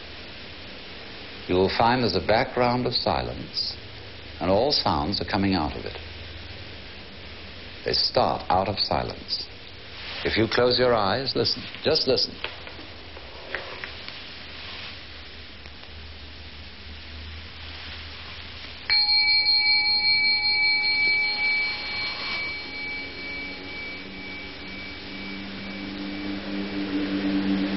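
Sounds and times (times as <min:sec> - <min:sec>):
speech: 0:01.5 - 0:03.8, 0:04.4 - 0:06.1, 0:07.8 - 0:09.5, 0:10.2 - 0:12.6
bell ringing: 0:18.9 - 0:27.6.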